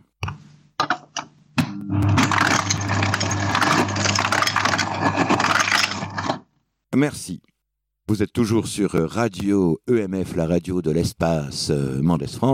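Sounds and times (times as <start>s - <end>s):
ice dispenser clicks and clacks: 2.1s - 6.4s
speech: 7.0s - 7.5s, 8.1s - 12.5s.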